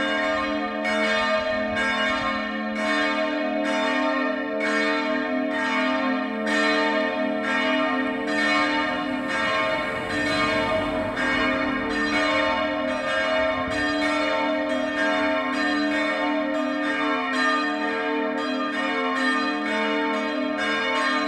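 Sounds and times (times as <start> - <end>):
multi-voice peal of bells tuned A1 C2 D2: 0.0 - 21.2.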